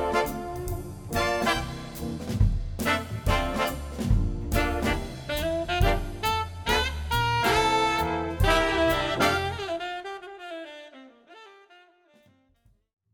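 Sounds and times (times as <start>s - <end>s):
big band playing: 0.0s - 10.4s.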